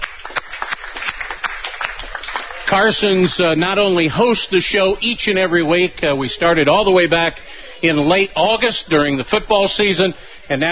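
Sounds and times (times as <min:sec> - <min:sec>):
audience clapping at a live sports show: 0:00.0 - 0:03.6
speech: 0:02.7 - 0:10.7.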